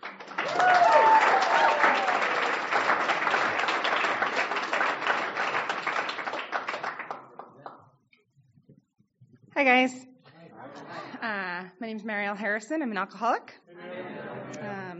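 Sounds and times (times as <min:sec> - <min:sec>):
audience applause welcoming a speaker at a meeting: 0:00.0 - 0:07.8
speech: 0:09.6 - 0:10.1, 0:11.8 - 0:13.6.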